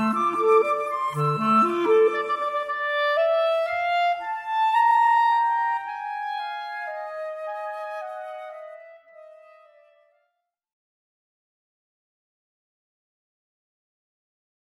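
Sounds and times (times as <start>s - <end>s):
clarinet: 0.0s - 10.2s
flute: 0.0s - 10.2s.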